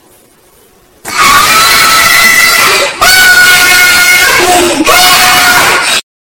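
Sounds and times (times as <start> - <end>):
person shouting: 1.2 - 6.0.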